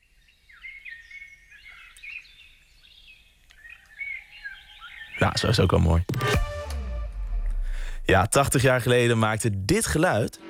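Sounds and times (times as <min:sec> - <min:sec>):
chorus of birds whistling and chirping: 0:00.2 - 0:05.7
speech: 0:05.2 - 0:06.4, 0:08.1 - 0:10.4
low rumble: 0:06.4 - 0:08.4.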